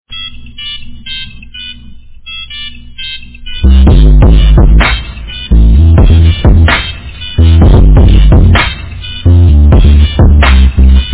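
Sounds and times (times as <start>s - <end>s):
ringtone kick remix: 3.6s - 11.1s.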